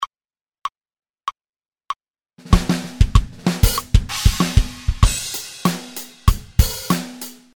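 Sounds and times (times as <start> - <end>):
kick drum: 2.4 - 5.2.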